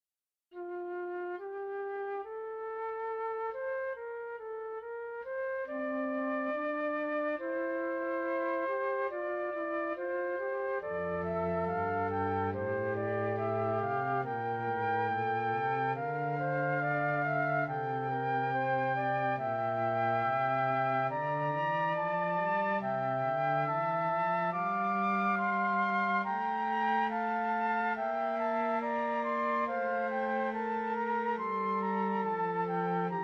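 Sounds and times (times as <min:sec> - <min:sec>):
short fugue: 0:00.6 - 0:33.2.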